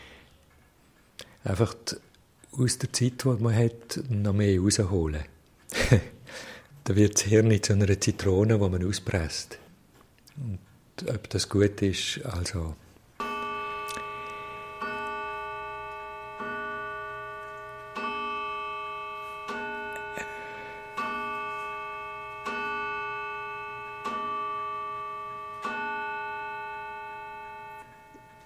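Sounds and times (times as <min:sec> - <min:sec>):
speech: 0:01.4 - 0:09.6, 0:10.4 - 0:12.8
laughter: 0:05.7 - 0:06.2
clock striking bell-like tones: 0:13.2 - 0:28.4.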